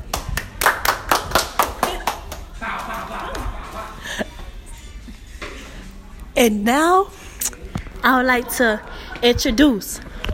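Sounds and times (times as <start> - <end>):
audience applause: 0.1 - 3.4
laughter: 1.7 - 4.6
speech: 6.4 - 7.2, 8.0 - 10.1.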